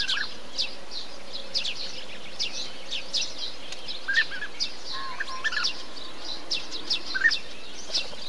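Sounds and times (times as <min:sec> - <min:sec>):
several bee-eaters calling together: 0:00.0 - 0:08.2.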